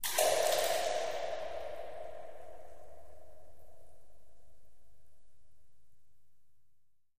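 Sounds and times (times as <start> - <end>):
echoing water drips in a cave: 0.0 - 5.1.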